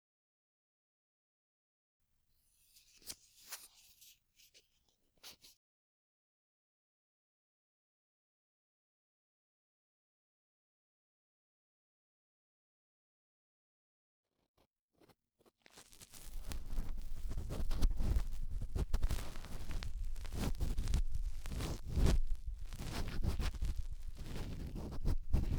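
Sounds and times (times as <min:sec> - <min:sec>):
cotton swab rubbing deep inside the right ear: 0:02.6 - 0:05.6, 0:15.9 - 0:25.5.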